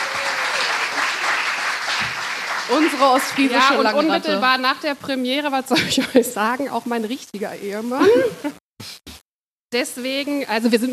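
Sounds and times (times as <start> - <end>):
audience applauding a performer at an evening stage show: 0.0 - 4.4
speech: 2.7 - 8.9, 9.7 - 10.9.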